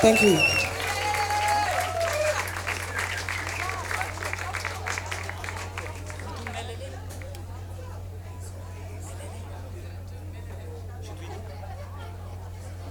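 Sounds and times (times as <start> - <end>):
crowd applause: 0.0 - 7.4.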